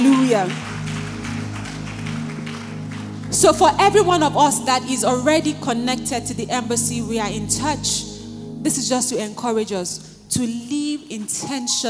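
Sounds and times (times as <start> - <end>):
audience applause: 0.0 - 4.4
speech: 0.3 - 0.7, 3.3 - 11.8.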